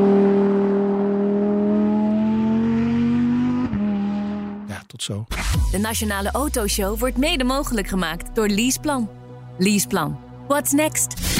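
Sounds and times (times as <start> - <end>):
Lamborghini Huracan Technica engine revving: 0.0 - 4.8
speech: 5.0 - 11.3.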